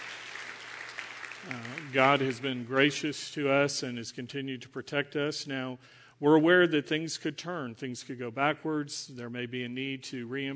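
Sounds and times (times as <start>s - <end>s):
audience applause: 0.0s - 2.8s
speech: 1.4s - 10.5s.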